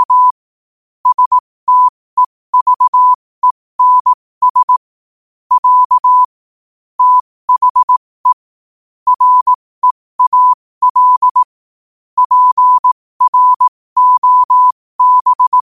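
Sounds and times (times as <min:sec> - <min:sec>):
morse code at 5 wpm: 0:00.0 - 0:00.3, 0:01.0 - 0:03.2, 0:03.8 - 0:04.9, 0:05.5 - 0:06.3, 0:07.0 - 0:08.5, 0:09.1 - 0:11.5, 0:12.2 - 0:15.6.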